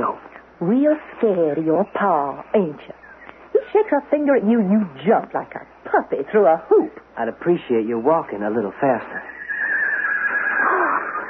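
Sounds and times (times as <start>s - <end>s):
speech: 0.0s - 3.0s, 3.7s - 9.3s
colt whinnying: 9.2s - 11.2s.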